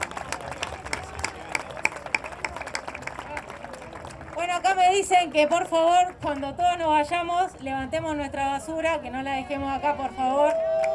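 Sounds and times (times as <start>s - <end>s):
audience applause: 0.0s - 4.9s
speech: 4.6s - 10.6s.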